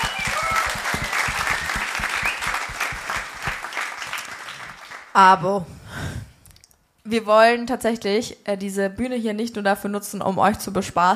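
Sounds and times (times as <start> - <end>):
audience clapping: 0.0 - 5.2
speech: 5.2 - 5.8, 7.1 - 11.1.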